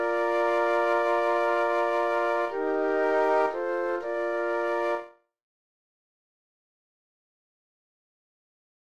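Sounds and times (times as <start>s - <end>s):
flutes: 0.0s - 5.3s.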